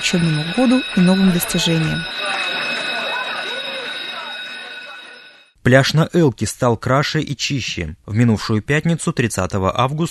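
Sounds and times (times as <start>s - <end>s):
electric school bell ringing for the first day of school: 0.0s - 5.5s
speech: 0.1s - 2.5s, 5.6s - 10.0s.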